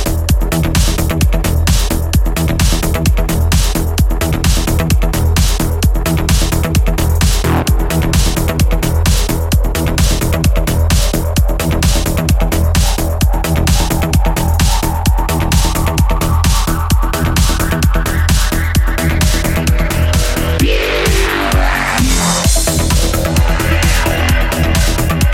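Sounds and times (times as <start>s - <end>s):
disco music track: 0.0s - 25.3s.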